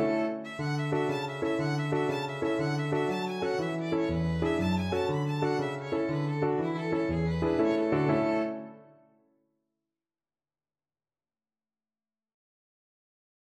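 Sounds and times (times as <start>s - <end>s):
Irish jig medley on violin: 0.0s - 8.9s.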